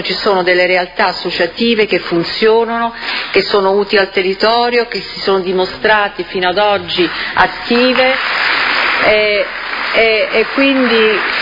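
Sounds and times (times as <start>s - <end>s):
speech: 0.0s - 11.4s
audience applause: 7.7s - 11.4s.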